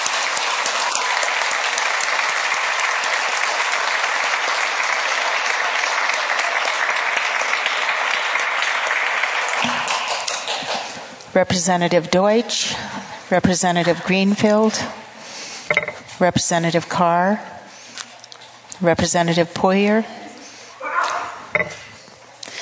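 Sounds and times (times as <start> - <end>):
crowd applause: 0.0 - 11.2
speech: 11.4 - 15.0, 16.2 - 17.6, 18.8 - 20.2.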